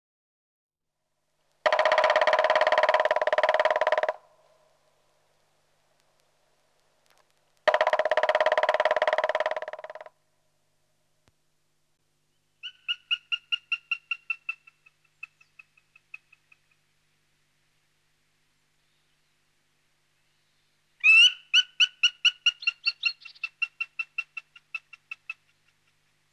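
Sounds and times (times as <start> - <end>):
black woodpecker calls: 1.6 - 4.6, 7.6 - 10.2, 12.6 - 16.9, 21.0 - 26.3.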